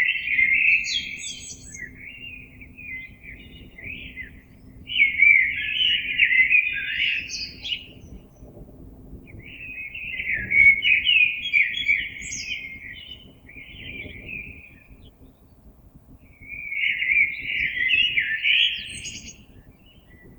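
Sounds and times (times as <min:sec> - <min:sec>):
common blackbird mellow warbling song: 0:00.0 - 0:20.3.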